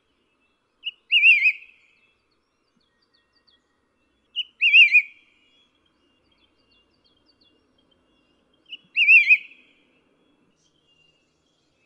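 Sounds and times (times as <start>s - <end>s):
white-whiskered laughingthrush calling: 0.8s - 1.8s, 4.4s - 5.2s, 8.7s - 9.7s.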